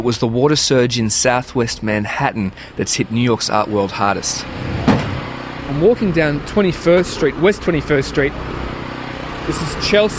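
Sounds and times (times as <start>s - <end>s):
speech: 0.0s - 4.8s, 5.7s - 8.6s, 9.5s - 10.1s
generator running on a city street: 2.6s - 10.1s.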